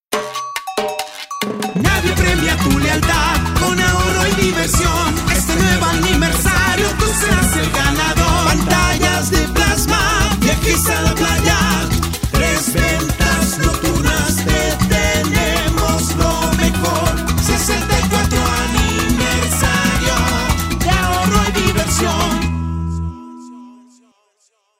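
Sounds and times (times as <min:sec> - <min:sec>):
jingle: 0:00.1 - 0:24.2.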